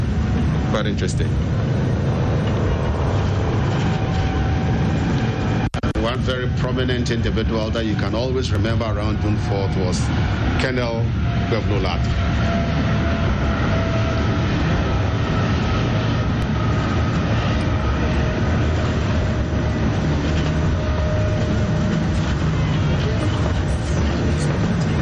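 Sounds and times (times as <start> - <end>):
escort helicopters flying overhead: 0.0 - 25.0
speech: 0.7 - 1.7, 6.0 - 12.6.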